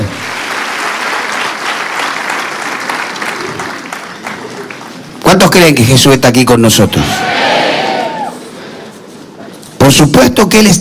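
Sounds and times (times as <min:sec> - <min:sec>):
audience applauding: 0:00.0 - 0:05.2
speech: 0:05.4 - 0:07.5, 0:09.9 - 0:10.8.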